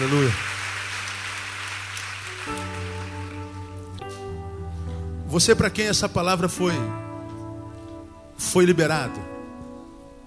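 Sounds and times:
speech: 0.0s - 0.6s, 5.3s - 7.1s, 8.4s - 9.3s
audience applause: 0.0s - 3.7s
sustained keyboard chords: 0.0s - 10.2s.

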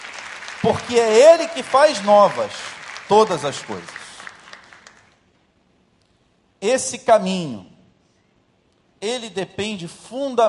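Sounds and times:
audience applauding: 0.0s - 5.2s
speech: 0.6s - 4.0s, 6.6s - 7.7s, 9.0s - 10.4s.

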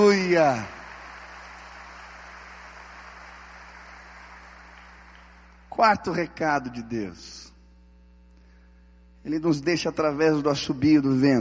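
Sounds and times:
speech: 0.0s - 0.8s, 5.8s - 7.5s, 9.2s - 11.4s
audience applauding: 0.0s - 5.7s
low electrical hum: 0.0s - 11.4s.

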